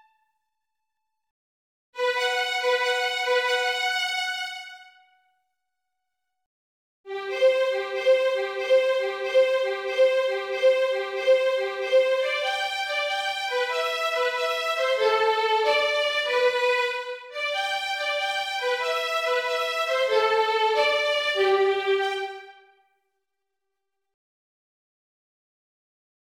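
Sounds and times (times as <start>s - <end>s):
violin hunting song: 2.0s - 5.0s, 7.1s - 22.7s.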